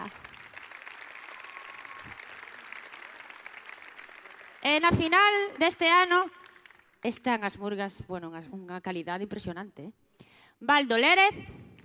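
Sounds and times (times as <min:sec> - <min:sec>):
audience applause: 0:00.0 - 0:05.8, 0:06.4 - 0:07.0
speech: 0:04.7 - 0:06.4, 0:07.0 - 0:10.0, 0:10.6 - 0:11.6.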